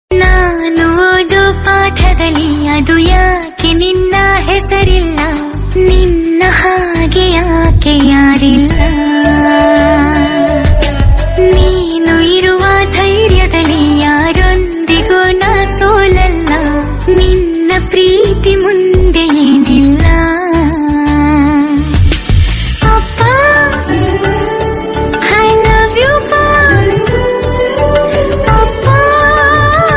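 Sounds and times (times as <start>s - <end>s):
woman singing in Kannada: 0.1s - 22.0s, 22.8s - 29.9s.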